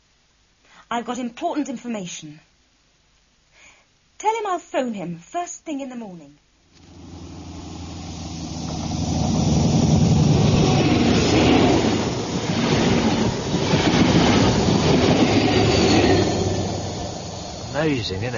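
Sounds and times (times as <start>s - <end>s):
speech: 0.9s - 2.5s, 4.5s - 6.4s, 17.8s - 18.3s
train wheels clattering: 6.8s - 17.9s
high-speed train passing at speed: 6.8s - 18.3s.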